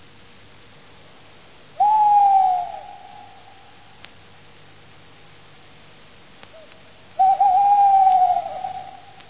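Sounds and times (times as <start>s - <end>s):
quiet background hiss: 0.0s - 9.2s
tawny owl hooting: 1.7s - 4.0s, 6.5s - 9.2s.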